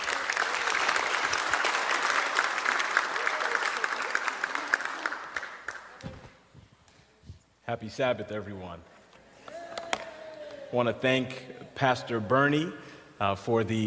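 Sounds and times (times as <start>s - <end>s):
audience applause: 0.0s - 6.0s
speech: 7.7s - 9.0s, 10.7s - 13.8s.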